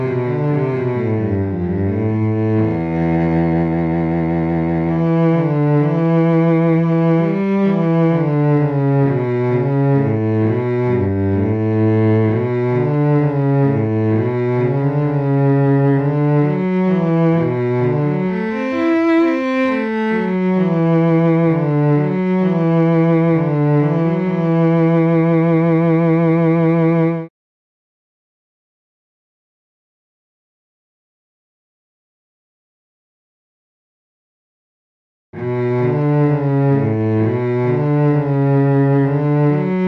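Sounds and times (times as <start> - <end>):
cello: 0.0 - 27.3, 35.4 - 39.8.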